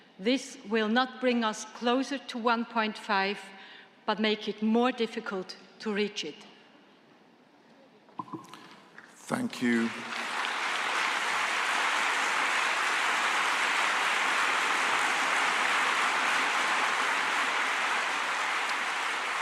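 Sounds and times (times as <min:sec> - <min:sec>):
speech: 0:00.2 - 0:06.5, 0:09.3 - 0:10.2
long applause in a conference hall: 0:09.3 - 0:19.4.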